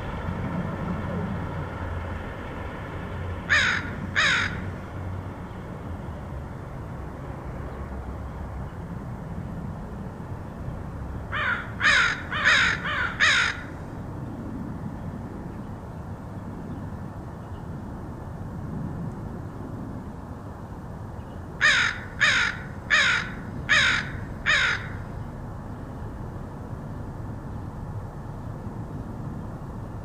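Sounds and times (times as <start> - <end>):
low traffic hum: 0.0 - 30.0
crow cawing: 3.5 - 4.7, 11.3 - 13.8, 21.6 - 25.1.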